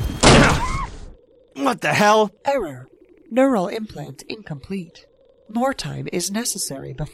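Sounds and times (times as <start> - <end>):
striking a door: 0.2 - 0.7
speech: 1.7 - 7.1.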